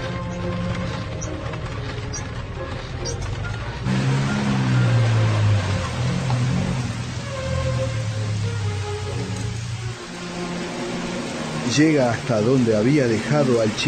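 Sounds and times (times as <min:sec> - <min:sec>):
low droning rumble: 0:00.0 - 0:12.3
steady rain falling at night: 0:00.0 - 0:13.8
speech: 0:11.8 - 0:13.8.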